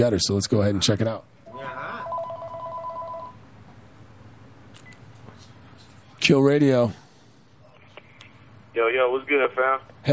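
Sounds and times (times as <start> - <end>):
speech: 0.0 - 1.8, 6.3 - 7.0, 8.8 - 10.1
low hum: 0.0 - 10.1
electronic telephone ringing for incoming call: 1.5 - 3.4.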